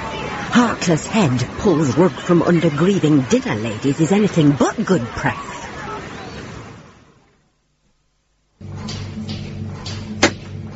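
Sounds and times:
speech: 0.6s - 5.5s
sharp bang in a kitchen preparing pigs' trotters: 8.8s - 10.7s.

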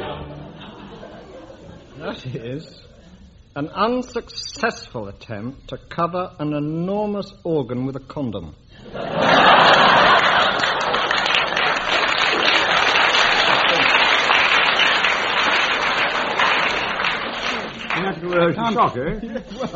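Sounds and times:
audience laughter: 0.0s - 2.3s, 8.8s - 18.0s, 19.2s - 19.7s
speech: 2.0s - 3.0s, 3.6s - 9.4s, 18.2s - 19.7s
audience applause: 9.4s - 18.5s.

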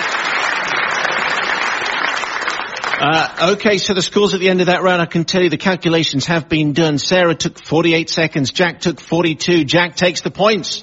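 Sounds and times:
round of applause at the end of a quiz-show round: 0.0s - 3.7s
speech: 3.0s - 10.8s.

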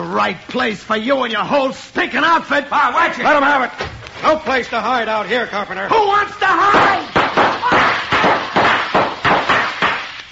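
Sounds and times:
speech: 0.0s - 7.1s
gunshots in a radio drama shootout: 6.7s - 10.1s.

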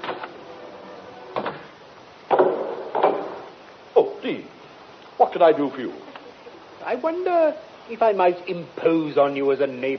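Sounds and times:
door opening: 1.2s - 3.5s
speech: 4.2s - 4.6s, 5.2s - 6.1s, 6.8s - 9.9s.

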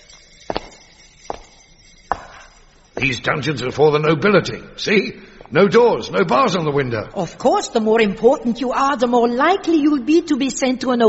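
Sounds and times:
footsteps going down stone steps into the dungeons of the Bloody Tower: 0.0s - 3.2s
speech: 3.0s - 11.0s.

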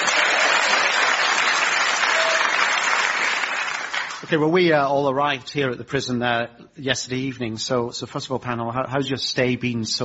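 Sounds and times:
audience applause: 0.0s - 4.3s
speech: 4.3s - 10.0s.

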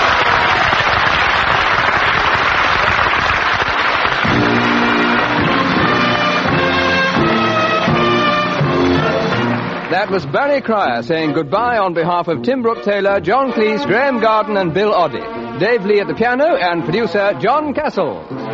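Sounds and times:
audience applause: 0.0s - 10.8s
speech: 10.0s - 18.5s.

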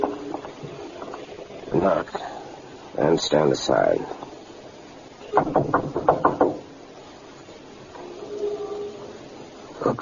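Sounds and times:
faint low murmur: 0.0s - 5.6s, 6.6s - 10.0s
speech: 1.8s - 2.4s, 3.0s - 4.2s, 5.4s - 5.9s
knocking on a door: 5.3s - 6.7s.

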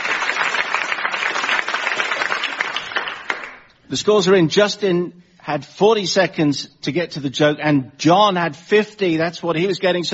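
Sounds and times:
audience applause: 0.0s - 3.7s
speech: 3.9s - 10.1s.

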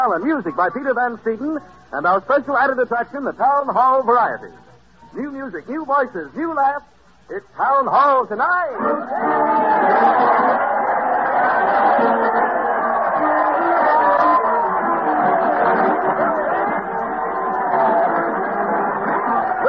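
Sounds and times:
speech: 0.0s - 10.7s
large crowd cheering and shouting: 8.4s - 19.6s.

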